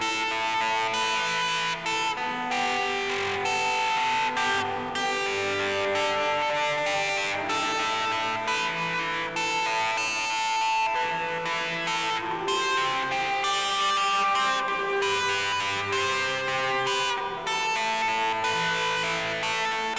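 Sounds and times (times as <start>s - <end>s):
guitar: 0.0s - 19.9s.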